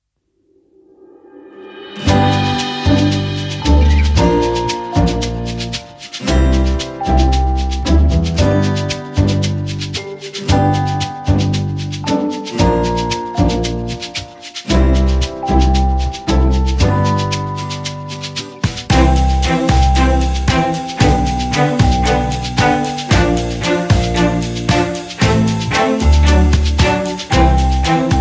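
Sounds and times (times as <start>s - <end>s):
background music: 1.9s - 28.2s.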